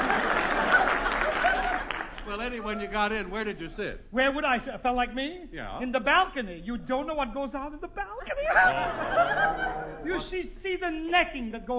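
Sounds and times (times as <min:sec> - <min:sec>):
audience applause: 0:00.0 - 0:02.9
laughter: 0:00.0 - 0:03.0, 0:08.3 - 0:10.2
speech: 0:02.5 - 0:11.7.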